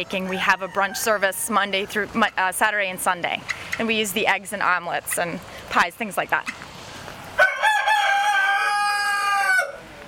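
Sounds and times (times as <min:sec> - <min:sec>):
speech: 0:00.0 - 0:06.6
rooster crowing: 0:00.3 - 0:01.6, 0:07.4 - 0:09.9.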